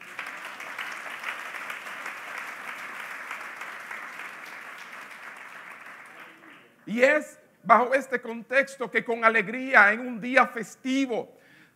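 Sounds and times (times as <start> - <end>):
sustained applause from a large gathering: 0.0 - 6.8
speech: 6.9 - 11.4.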